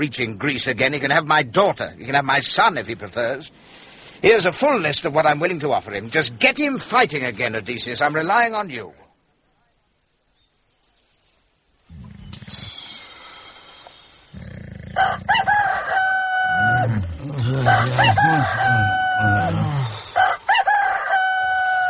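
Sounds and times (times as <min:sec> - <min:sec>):
speech: 0:00.0 - 0:09.0, 0:16.8 - 0:19.8
rooster-crow alarm blaring: 0:15.0 - 0:21.8.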